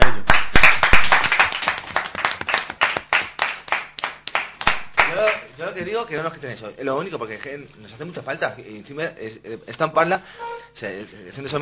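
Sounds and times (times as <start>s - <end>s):
people clapping hands: 0.0s - 5.5s
speech: 6.0s - 11.5s.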